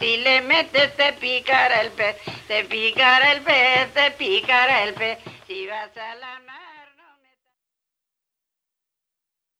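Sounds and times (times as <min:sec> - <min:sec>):
jota folk dance music: 0:00.0 - 0:05.9.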